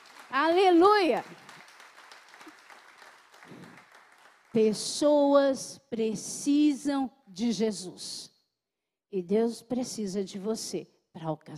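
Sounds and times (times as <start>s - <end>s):
audience applause: 0.0s - 4.6s
speech: 0.3s - 1.4s, 4.5s - 8.3s, 9.1s - 11.5s.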